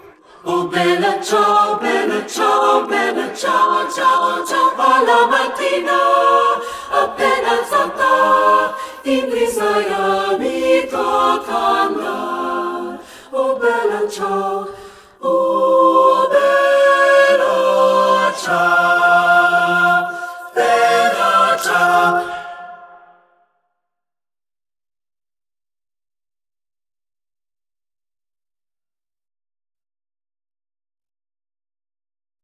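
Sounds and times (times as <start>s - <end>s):
three-part mixed choir singing: 0.0s - 23.4s.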